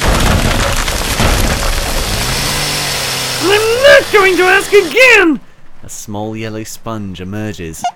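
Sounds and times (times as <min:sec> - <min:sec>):
door being broken down: 0:00.0 - 0:03.0
chainsaw starting: 0:01.7 - 0:05.1
speech: 0:04.0 - 0:07.9.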